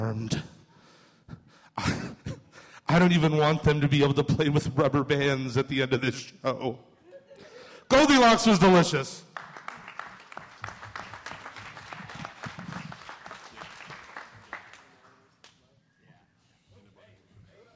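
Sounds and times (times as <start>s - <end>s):
speech: 0.0s - 0.5s, 2.9s - 6.9s, 7.9s - 9.3s
audience applause: 9.4s - 15.3s.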